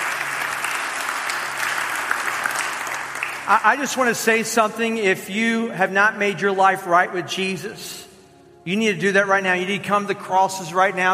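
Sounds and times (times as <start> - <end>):
church audience applause: 0.0 - 4.0
speech: 3.5 - 8.0, 8.6 - 11.1.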